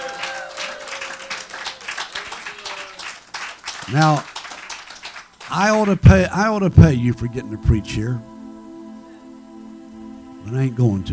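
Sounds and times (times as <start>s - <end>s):
audience clapping hands: 0.0s - 6.5s
speech: 3.9s - 4.3s, 5.5s - 8.3s, 10.5s - 11.1s.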